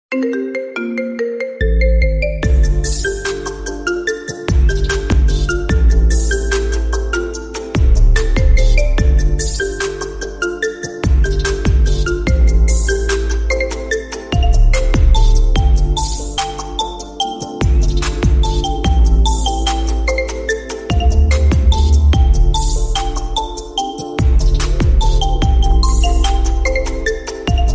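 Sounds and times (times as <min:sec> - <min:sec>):
8D instrumental remix ringtone: 0:00.1 - 0:27.7.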